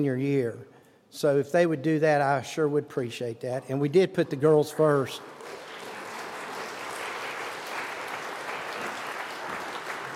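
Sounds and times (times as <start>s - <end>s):
speech: 0.0s - 5.6s
audience applause: 5.1s - 10.1s.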